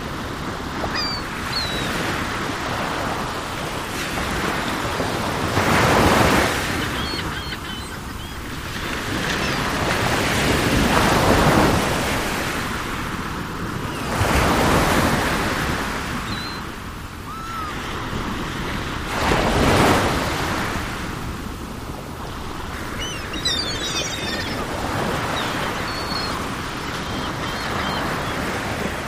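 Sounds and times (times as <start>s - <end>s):
ocean waves: 0.0s - 29.0s
seagulls calling: 0.7s - 2.3s, 5.7s - 10.4s, 16.1s - 18.0s, 22.6s - 28.9s.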